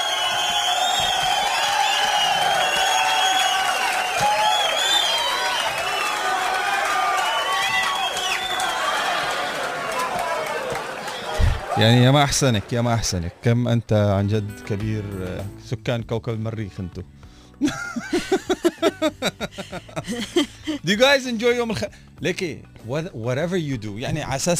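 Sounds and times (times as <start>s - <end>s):
large crowd cheering, shouting and whooping: 0.0s - 13.5s
speech: 11.8s - 24.5s
laughter: 17.6s - 20.9s.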